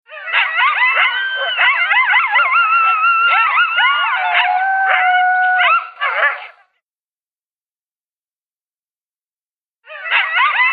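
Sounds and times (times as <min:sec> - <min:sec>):
coyote howling and yipping: 0:00.1 - 0:06.6, 0:09.9 - 0:10.7.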